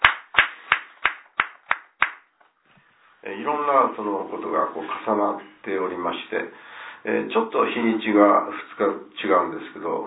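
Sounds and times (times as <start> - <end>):
hand clapping at a couple's 30th wedding anniversary celebration: 0.0 - 2.5
speech: 3.2 - 10.0.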